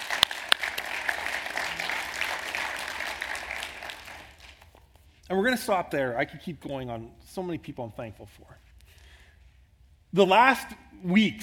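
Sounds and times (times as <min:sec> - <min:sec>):
applause for a church's trustee team: 0:00.0 - 0:04.8
speech: 0:05.3 - 0:08.7, 0:10.1 - 0:11.4.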